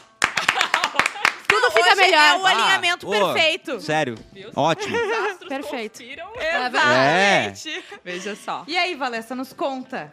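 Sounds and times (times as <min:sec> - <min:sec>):
audience clapping: 0:00.0 - 0:02.5
laughter: 0:00.4 - 0:03.4, 0:04.6 - 0:08.6
speech: 0:02.0 - 0:10.1.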